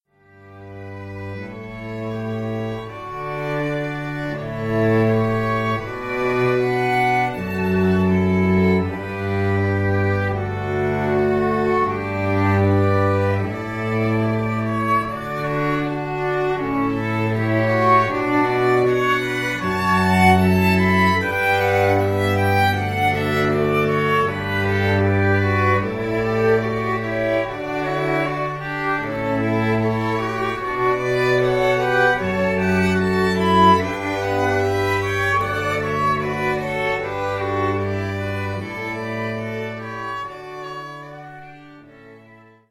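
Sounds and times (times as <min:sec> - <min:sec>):
strings: 0:00.1 - 0:42.6.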